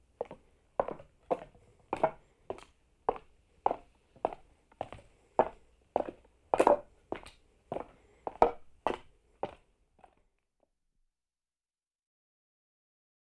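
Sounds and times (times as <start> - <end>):
own footsteps on wood in jungle: 0.2 - 10.2.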